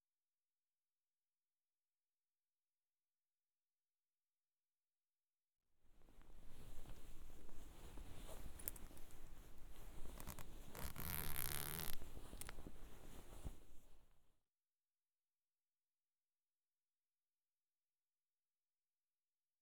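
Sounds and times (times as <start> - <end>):
footjob ASMR sounds: 6.4 - 14.0.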